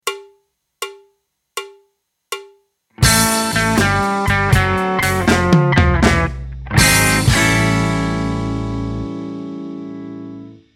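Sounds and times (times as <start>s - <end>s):
blues music: 2.9s - 10.7s.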